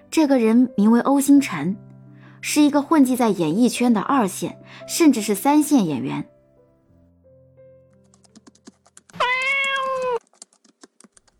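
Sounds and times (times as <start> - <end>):
speech: 0.1 - 6.3
keyboard typing: 7.9 - 11.3
cat meowing: 9.2 - 10.2.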